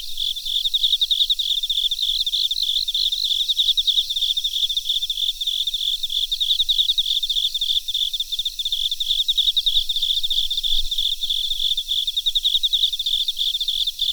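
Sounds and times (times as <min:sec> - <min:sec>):
cricket chirping: 0:00.0 - 0:14.1.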